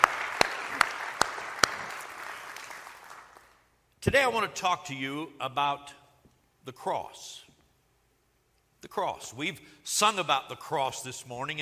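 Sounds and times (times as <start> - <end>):
church congregation clapping during a service: 0.0 - 3.7
soft steady noise: 0.0 - 11.6
speech: 4.0 - 6.0, 6.6 - 7.5, 8.8 - 11.6.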